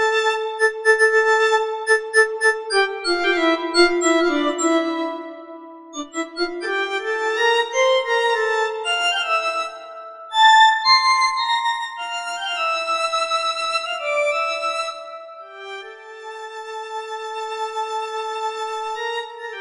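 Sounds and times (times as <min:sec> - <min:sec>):
violin: 0:00.0 - 0:19.5.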